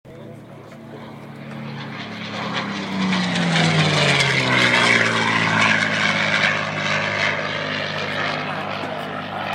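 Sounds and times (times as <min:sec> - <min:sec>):
P51 aircraft engine: 0:00.1 - 0:09.5.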